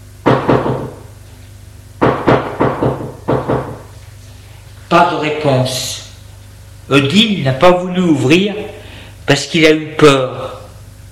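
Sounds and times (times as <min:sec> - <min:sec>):
knocking on a door: 0:00.2 - 0:01.0, 0:02.0 - 0:03.9
speech: 0:04.9 - 0:06.0, 0:06.9 - 0:08.7, 0:09.3 - 0:10.6.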